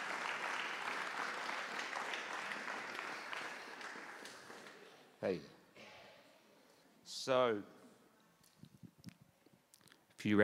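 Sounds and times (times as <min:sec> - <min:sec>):
round of applause: 0:00.0 - 0:05.0
speech: 0:05.2 - 0:05.6, 0:07.2 - 0:07.8, 0:10.2 - 0:10.4.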